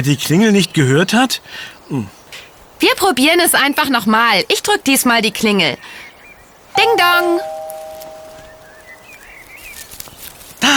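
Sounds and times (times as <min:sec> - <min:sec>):
speech: 0:00.0 - 0:02.2, 0:02.8 - 0:06.0, 0:06.8 - 0:07.5
cat rustling in the bushes: 0:07.4 - 0:10.7.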